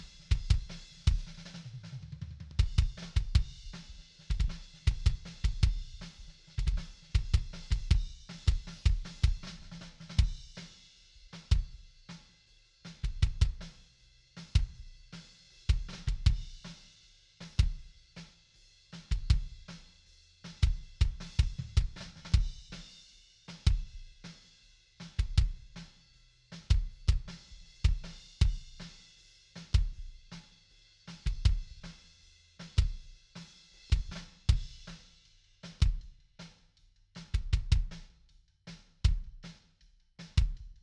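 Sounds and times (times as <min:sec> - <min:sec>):
kick drum: 0:00.0 - 0:01.4, 0:02.6 - 0:10.5, 0:13.0 - 0:13.7, 0:15.7 - 0:16.6, 0:19.0 - 0:19.7, 0:20.6 - 0:22.8, 0:23.6 - 0:24.0, 0:25.2 - 0:25.8, 0:26.6 - 0:28.9, 0:29.7 - 0:30.2, 0:31.2 - 0:31.9, 0:32.8 - 0:33.1, 0:33.9 - 0:34.9, 0:35.8 - 0:36.2, 0:37.2 - 0:38.2, 0:38.9 - 0:39.5, 0:40.2 - 0:40.8.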